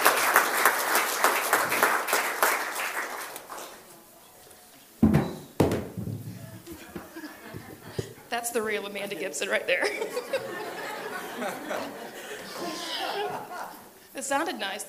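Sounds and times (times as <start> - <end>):
audience clapping hands: 0.0 - 3.9
laughter: 6.5 - 8.3, 9.0 - 14.0
speech: 8.3 - 10.8, 11.4 - 12.1, 14.2 - 14.8.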